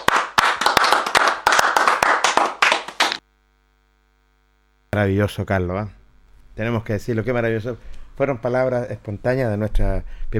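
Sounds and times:
applause for an honoree: 0.0 - 3.2
speech: 4.9 - 6.0, 6.6 - 10.3.

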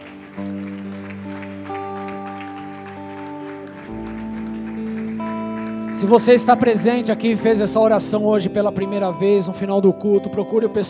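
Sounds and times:
audience applause: 0.0 - 7.8
speech: 6.0 - 10.8.

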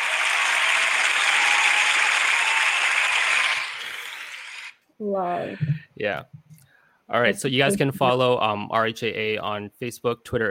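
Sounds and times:
small group clapping: 0.0 - 4.8
speech: 5.0 - 6.4, 7.1 - 10.4.

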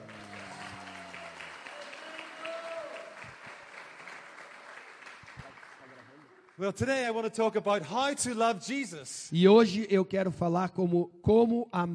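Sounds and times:
audience applause: 0.0 - 6.8
speech: 6.6 - 11.9.

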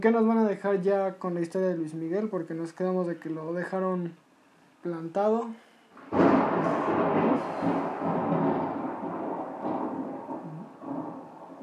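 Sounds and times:
speech: 0.0 - 4.2, 4.8 - 7.8
thunder: 6.0 - 11.6.

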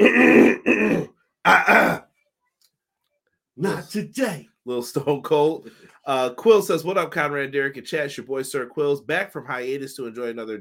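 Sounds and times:
throat clearing: 0.0 - 2.1
speech: 3.6 - 10.5.

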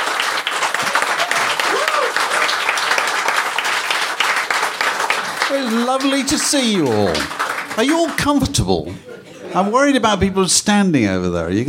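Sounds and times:
audience at a record club event applauding: 0.0 - 8.9
speech: 5.6 - 11.6
laughter: 6.8 - 10.0.

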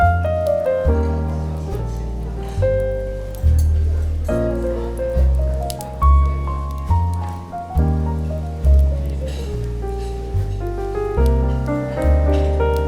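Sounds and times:
light rustling: 0.0 - 12.8
smooth jazz with deep bass and mellow chords: 0.0 - 12.8
faint murmuring in coffee shop bookstore: 0.4 - 12.8.

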